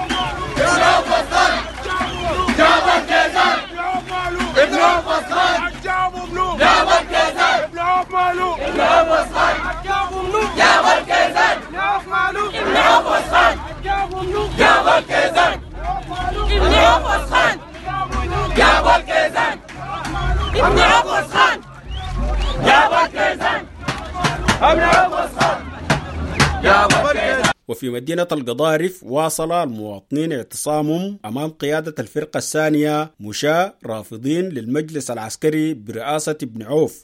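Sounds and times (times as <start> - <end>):
displaced people from Darfur camps chanting: 0.0 - 27.6
speech: 24.6 - 25.6, 26.7 - 37.0.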